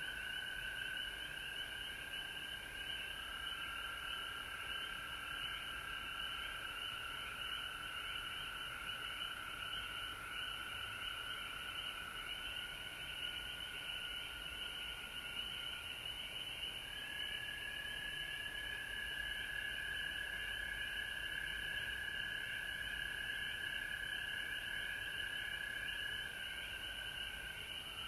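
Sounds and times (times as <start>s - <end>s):
frog chorus: 0.0s - 28.0s.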